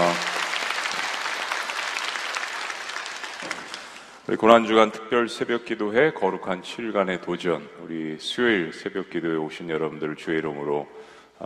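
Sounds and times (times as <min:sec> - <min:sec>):
audience applause: 0:00.0 - 0:04.2
speech: 0:04.3 - 0:11.4.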